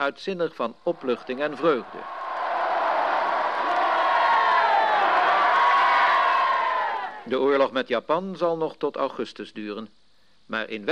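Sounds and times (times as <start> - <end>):
speech: 0.0 - 2.2, 7.3 - 10.9
crowd cheering in celebration: 0.9 - 7.3.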